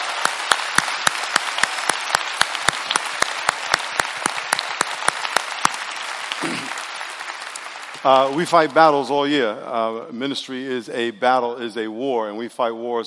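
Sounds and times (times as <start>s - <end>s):
audience applause for church staff at a Christmas service: 0.0s - 9.3s
speech: 8.0s - 13.0s.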